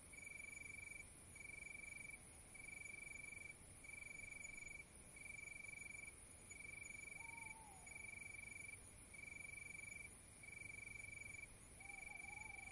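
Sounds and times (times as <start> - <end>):
crickets chirping: 0.0 - 12.7.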